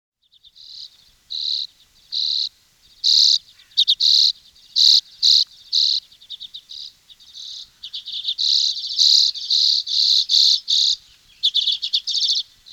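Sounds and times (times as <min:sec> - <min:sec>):
bird singing loud high buzzy trilled phrases: 0:00.2 - 0:12.7.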